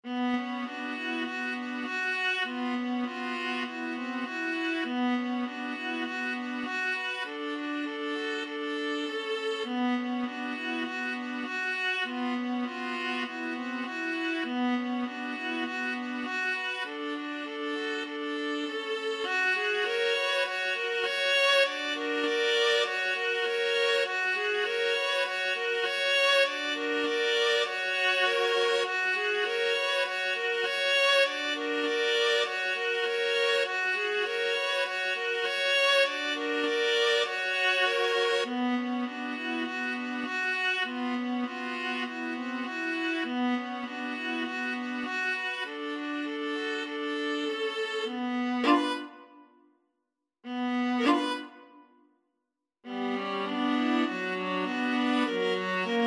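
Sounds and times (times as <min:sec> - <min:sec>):
viola trio playing: 0:00.1 - 0:49.2, 0:50.5 - 0:51.6, 0:52.9 - 0:56.0.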